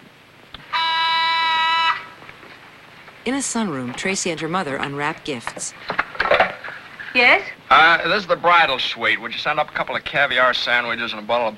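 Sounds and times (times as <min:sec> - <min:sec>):
intercom phone buzzer: 0:00.6 - 0:02.2
speech: 0:03.3 - 0:06.0, 0:07.2 - 0:11.5.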